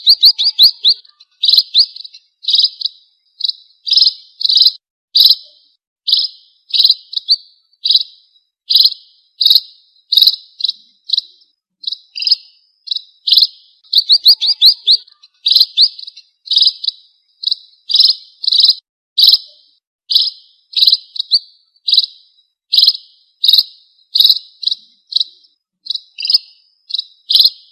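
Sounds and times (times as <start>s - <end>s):
red-throated parrotfinch Erythrura psittacea song: 0.0s - 27.7s.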